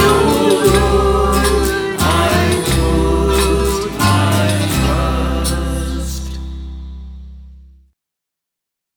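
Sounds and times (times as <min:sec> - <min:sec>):
choir singing: 0:00.0 - 0:06.6.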